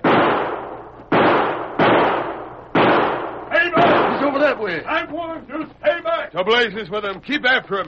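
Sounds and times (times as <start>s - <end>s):
gunshots in a radio western drama: 0.0s - 4.8s
speech: 4.6s - 7.8s.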